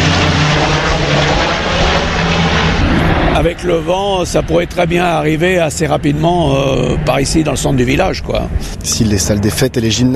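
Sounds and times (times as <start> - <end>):
Canadair firefighting water-bomber plane flying over: 0.0 - 10.1
speech: 3.4 - 10.1.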